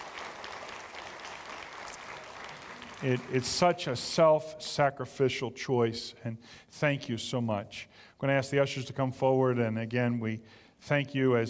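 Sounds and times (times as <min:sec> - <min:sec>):
audience applause: 0:00.0 - 0:03.8
speech: 0:03.0 - 0:11.4.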